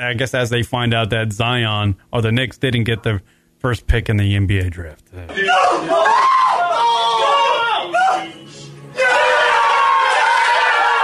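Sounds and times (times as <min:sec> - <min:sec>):
speech: 0:00.0 - 0:07.0
recorded crowd of fans cheering: 0:05.3 - 0:11.0.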